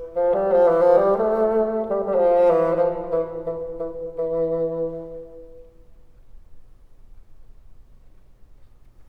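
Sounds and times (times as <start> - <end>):
low bassoon notes: 0.0 - 5.8.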